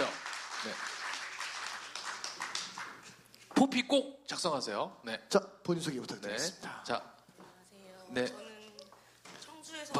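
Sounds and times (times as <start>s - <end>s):
audience applause: 0.0s - 3.1s
speech: 0.6s - 0.9s, 3.6s - 7.2s, 8.1s - 8.5s.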